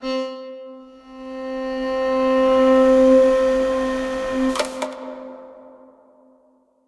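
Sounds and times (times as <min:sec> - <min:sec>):
MPE bowed zither: 0:00.0 - 0:05.3.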